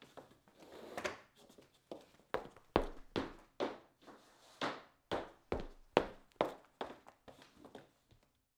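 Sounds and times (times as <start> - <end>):
boots walking on laminated floor: 1.9 - 8.2.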